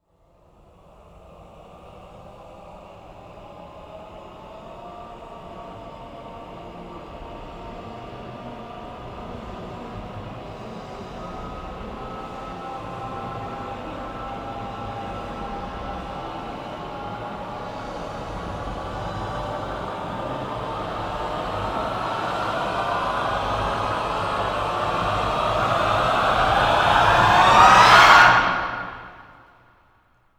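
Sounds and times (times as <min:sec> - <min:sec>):
voices rising: 0:07.2 - 0:29.4.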